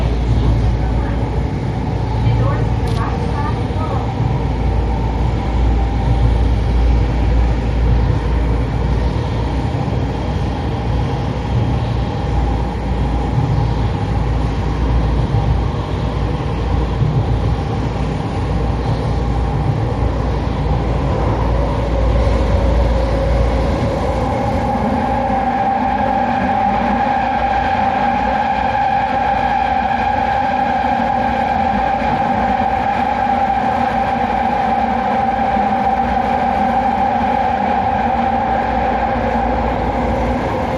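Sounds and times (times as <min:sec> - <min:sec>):
loud Toei Oedo Line subway train wheel flange squeal under Nakaochiai intersection: 0:00.0 - 0:40.7.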